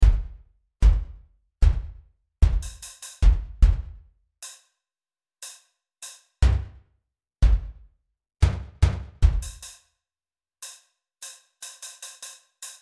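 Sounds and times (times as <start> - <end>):
drums: 0.0 - 4.6, 7.4 - 7.8, 8.4 - 9.8, 10.6 - 12.8.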